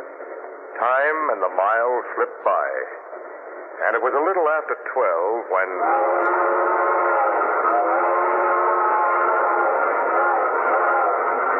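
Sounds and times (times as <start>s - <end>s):
speech: 0.8s - 6.8s
steam train whistle blowing: 5.8s - 11.5s.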